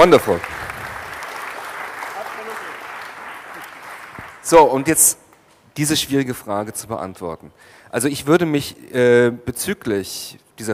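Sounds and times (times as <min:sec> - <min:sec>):
speech: 0:00.0 - 0:00.6, 0:04.5 - 0:05.2, 0:05.8 - 0:10.7
audience applause: 0:00.0 - 0:04.5.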